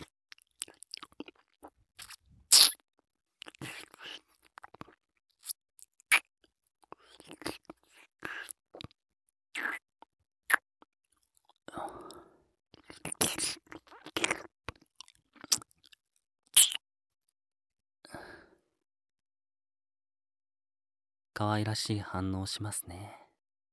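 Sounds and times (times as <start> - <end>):
crisp bites and chewing of crunchy food: 0.0 - 2.8, 3.4 - 9.0, 9.6 - 9.8, 10.4 - 12.2, 12.8 - 16.8
speech: 21.4 - 23.2
soft whispering: 21.5 - 23.4.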